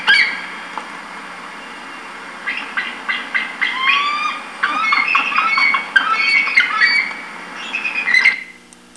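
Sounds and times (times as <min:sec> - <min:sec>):
eagle: 0:01.8 - 0:08.6.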